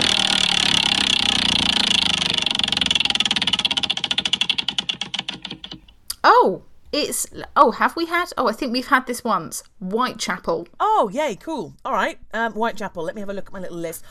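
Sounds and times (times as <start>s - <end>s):
prize wheel ticking as it slows: 0.0s - 5.9s
speech: 6.4s - 14.1s.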